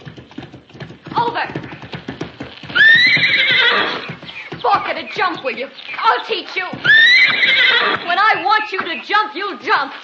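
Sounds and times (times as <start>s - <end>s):
horse hoofbeats in a riding ring: 0.0s - 10.0s
horse whinnying in a riding ring: 2.6s - 4.5s, 6.7s - 8.4s
speech: 5.2s - 10.0s.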